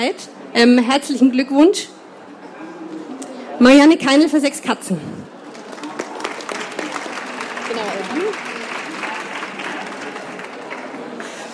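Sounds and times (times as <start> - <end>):
speech: 0.0 - 2.0, 3.6 - 5.3
audience applause: 5.4 - 11.5.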